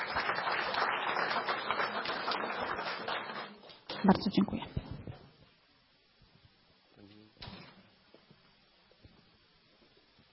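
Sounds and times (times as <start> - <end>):
applause: 0.0 - 4.0
speech: 4.0 - 4.8.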